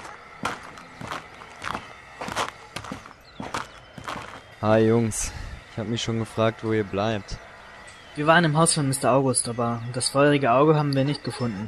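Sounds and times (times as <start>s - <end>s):
footsteps of people walking over to someone: 0.0s - 4.5s
speech: 4.6s - 7.4s, 8.2s - 11.6s.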